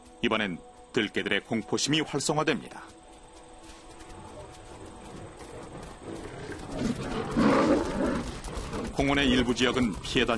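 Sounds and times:
speech: 0.2s - 3.0s, 9.0s - 10.3s
lion roaring: 5.4s - 9.8s.

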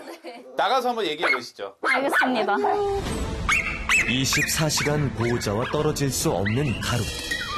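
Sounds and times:
speech: 0.6s - 3.2s, 4.1s - 7.4s
dog barking: 1.2s - 2.5s, 3.5s - 4.5s, 5.2s - 5.9s.

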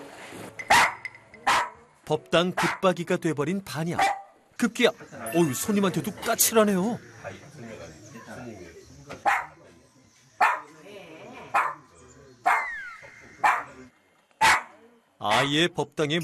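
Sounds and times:
dog barking: 0.7s - 1.8s, 2.6s - 2.8s, 4.0s - 4.4s, 9.2s - 9.6s, 10.4s - 10.7s, 11.5s - 11.8s, 12.5s - 12.8s, 13.4s - 13.8s, 14.4s - 15.5s
speech: 2.1s - 9.4s, 15.3s - 16.2s.

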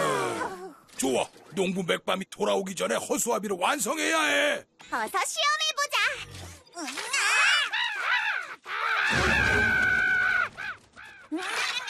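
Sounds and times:
speech: 1.0s - 7.2s, 11.3s - 11.6s
crows cawing: 7.4s - 11.8s.

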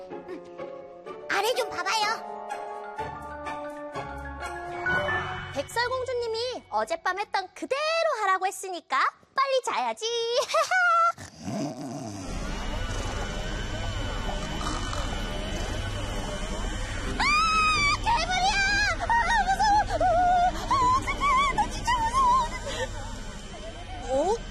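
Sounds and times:
speech: 1.4s - 2.3s, 5.6s - 10.9s
warbling growl-like tones: 11.3s - 24.4s
vacuum cleaner running: 11.8s - 24.4s
washing machine running: 12.3s - 24.4s.

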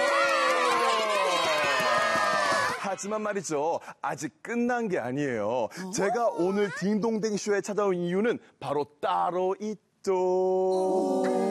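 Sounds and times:
audience applause for a magician: 0.0s - 2.9s
speech: 3.0s - 11.4s.

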